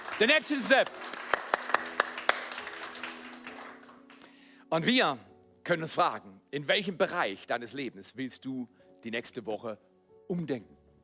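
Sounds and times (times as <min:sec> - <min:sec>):
audience applause: 0:00.0 - 0:04.2
speech: 0:00.2 - 0:01.2, 0:04.7 - 0:10.8.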